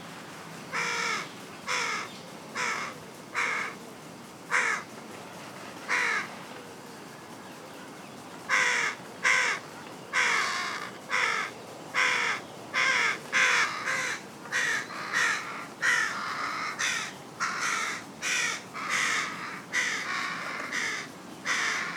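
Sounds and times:
Carrion crow Corvus corone giving harsh grating caws: 0.8 - 3.8, 4.5 - 4.8, 5.9 - 6.3, 8.5 - 9.6, 10.2 - 21.9.

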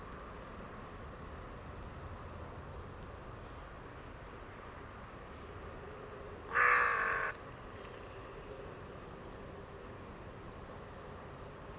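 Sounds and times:
bird rasping call: 6.5 - 7.4.

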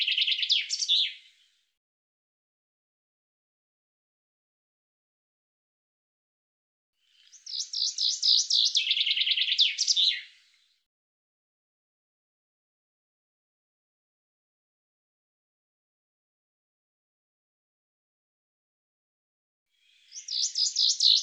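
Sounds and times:
bird trilling song: 0.0 - 1.4, 7.1 - 10.6, 19.8 - 21.2.

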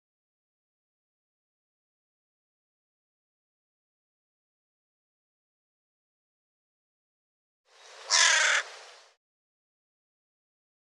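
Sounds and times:
quiet hiss: 7.7 - 9.2
bird harsh caw: 8.0 - 8.7.

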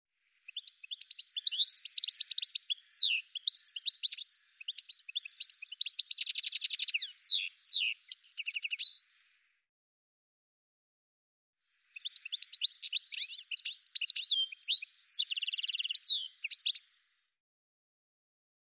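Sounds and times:
bird chirping: 0.2 - 9.4, 11.7 - 17.2.

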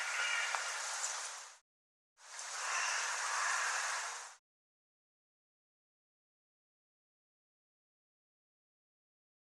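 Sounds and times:
bird harsh raspy calls: 0.0 - 1.1, 2.5 - 4.3.

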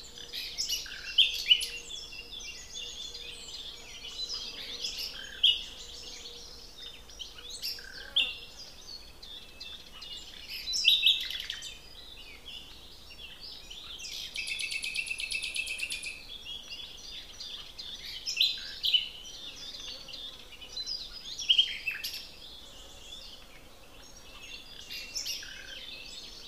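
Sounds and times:
common nightingale song: 0.0 - 26.4
other birds singing softly: 0.0 - 26.4.

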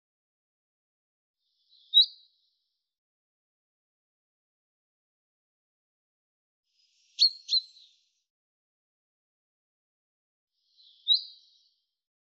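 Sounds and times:
bird giving short high chirps: 1.6 - 2.2, 6.8 - 8.1, 10.6 - 11.8.

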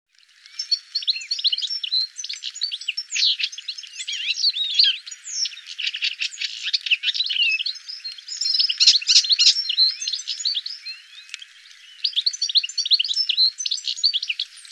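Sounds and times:
bird giving quick high chirps and short sweeping notes: 0.3 - 14.7.

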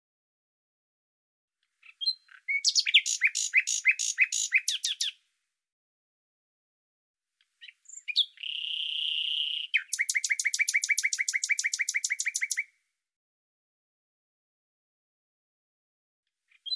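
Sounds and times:
bird song: 1.6 - 5.3, 7.4 - 12.8, 16.4 - 16.7.

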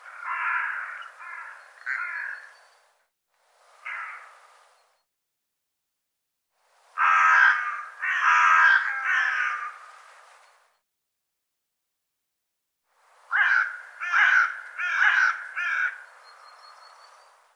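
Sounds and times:
bird calling with rough grating caws: 0.0 - 2.7, 3.8 - 4.4, 7.0 - 9.9, 13.3 - 16.1.

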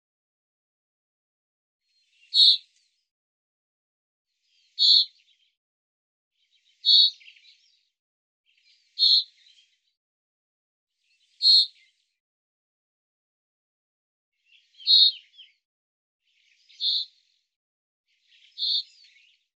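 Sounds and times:
bird chirps: 1.9 - 3.0, 4.4 - 5.5, 6.4 - 7.9, 8.5 - 9.8, 11.1 - 12.0, 14.4 - 15.6, 16.3 - 17.4, 18.1 - 19.5.

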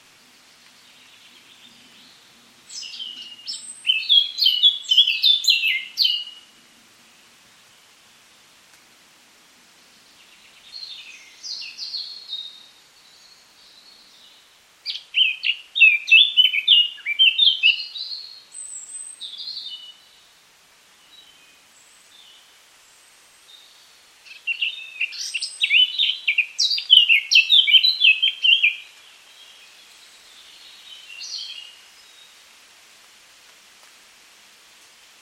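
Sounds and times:
Eurasian Blackcap warbling song: 0.8 - 6.4, 10.2 - 20.1, 23.5 - 32.2.

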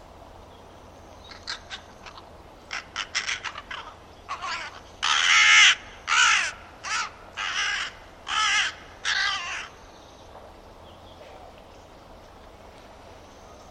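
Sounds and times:
bird giving harsh hoarse cawing calls: 1.3 - 9.9.

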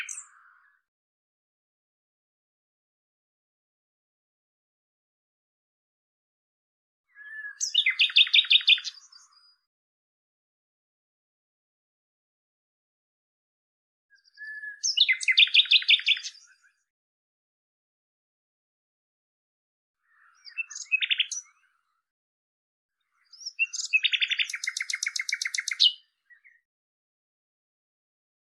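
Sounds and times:
Common nightingale song with chirps and rattling series: 7.1 - 9.4, 14.1 - 16.7, 20.1 - 21.7, 23.2 - 26.6.

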